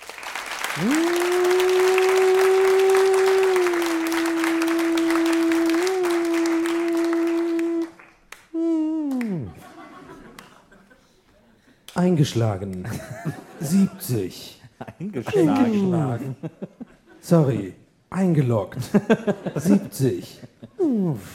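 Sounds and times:
audience applause: 0:00.0 - 0:10.6
speech: 0:00.8 - 0:01.4, 0:12.2 - 0:21.3
short falling whoop: 0:00.8 - 0:08.0
laughter: 0:09.0 - 0:11.6, 0:12.8 - 0:17.7, 0:18.8 - 0:21.3.

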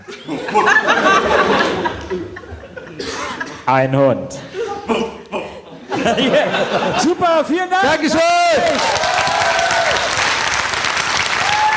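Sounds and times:
laughter: 0:00.0 - 0:03.7, 0:04.4 - 0:07.3
speech: 0:00.3 - 0:01.3, 0:03.7 - 0:05.0, 0:06.0 - 0:09.3
audience applause: 0:07.9 - 0:11.7.

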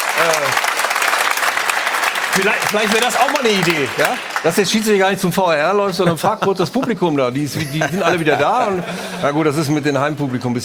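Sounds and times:
studio audience applause: 0:00.0 - 0:05.3
speech: 0:00.2 - 0:00.7, 0:02.4 - 0:10.6
laughter: 0:07.5 - 0:10.6.

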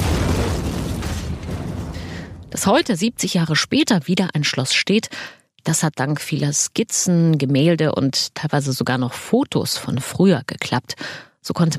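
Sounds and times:
blasting demolishing the war-damaged remains of the Berlin Palace: 0:00.0 - 0:03.3
speech: 0:02.6 - 0:11.7.

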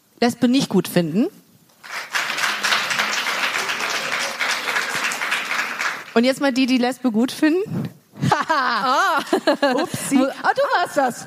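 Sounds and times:
speech: 0:00.2 - 0:01.4, 0:06.2 - 0:11.2
audience applause: 0:01.8 - 0:06.2
laughter: 0:08.2 - 0:11.2.

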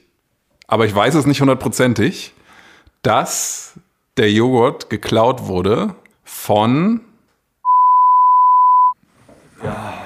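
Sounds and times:
speech: 0:00.7 - 0:02.4, 0:03.0 - 0:07.1, 0:09.6 - 0:10.0
censor beep: 0:07.6 - 0:09.0.

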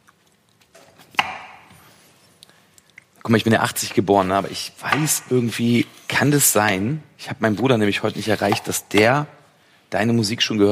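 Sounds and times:
knife chopping bell pepper: 0:01.1 - 0:01.8, 0:04.8 - 0:06.1, 0:08.1 - 0:09.2
speech: 0:03.3 - 0:10.7.

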